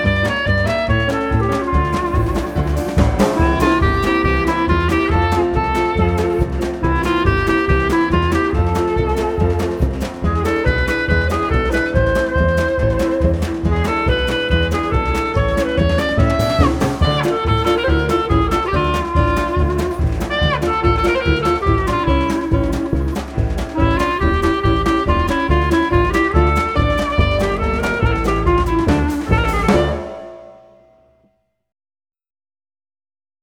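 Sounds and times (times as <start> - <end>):
instrumental music: 0.0 - 31.2.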